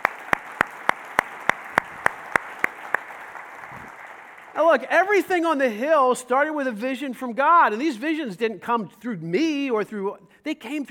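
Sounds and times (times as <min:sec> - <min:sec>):
applause: 0:00.0 - 0:05.3
speech: 0:04.6 - 0:10.8.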